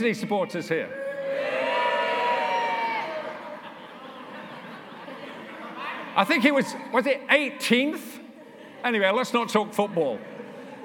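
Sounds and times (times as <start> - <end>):
speech: 0.0 - 1.6, 6.2 - 8.2, 8.8 - 10.4
live audience cheering: 0.9 - 3.7
laughter: 2.8 - 6.5, 8.3 - 10.8.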